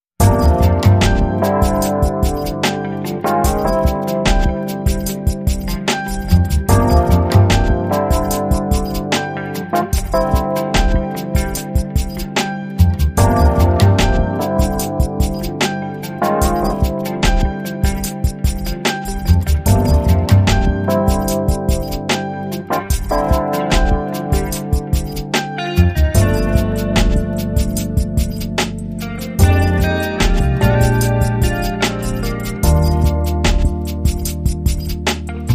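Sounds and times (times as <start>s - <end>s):
chill guitar music: 0.2s - 35.5s.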